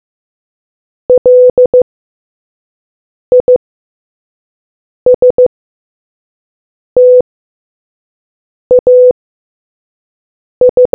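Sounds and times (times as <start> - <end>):
morse code beeps: 1.1 - 1.8, 3.3 - 3.6, 5.1 - 5.5, 7.0 - 7.2, 8.7 - 9.1, 10.6 - 10.9.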